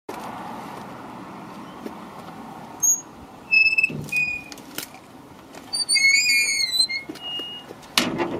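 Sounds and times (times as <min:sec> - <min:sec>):
gate: 0:02.8 - 0:04.5, 0:05.7 - 0:08.3.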